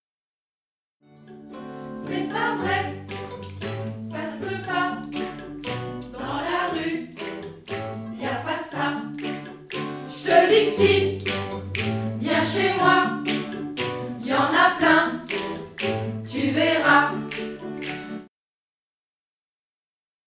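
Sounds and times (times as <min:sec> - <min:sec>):
rhythmic refrain: 0:02.1 - 0:18.3.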